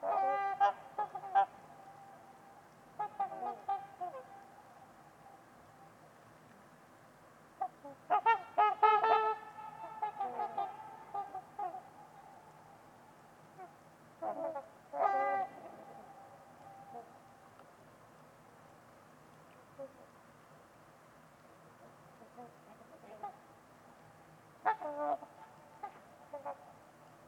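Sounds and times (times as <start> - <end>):
trumpeter swans honking: 0.0 - 5.9, 7.6 - 17.4, 22.2 - 23.5, 24.6 - 26.8
steady low hiss: 0.0 - 27.2.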